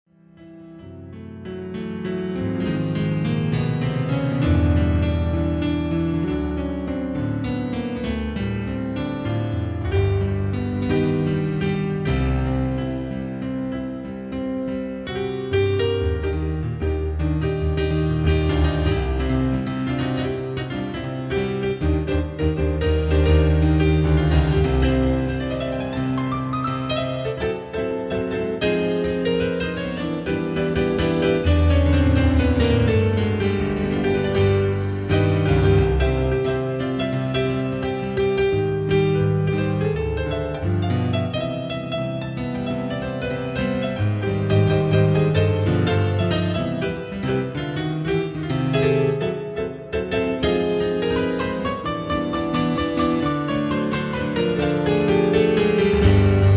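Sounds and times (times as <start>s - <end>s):
solo piano: 0.0s - 56.5s.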